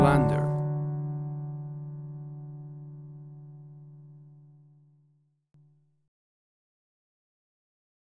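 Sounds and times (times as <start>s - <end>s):
minor key music: 0.0s - 4.6s.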